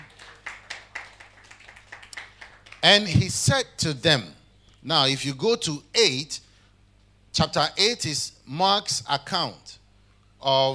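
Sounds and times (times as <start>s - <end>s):
audience clapping: 0.0s - 3.1s
speech: 2.8s - 6.4s, 7.4s - 9.8s, 10.4s - 10.7s.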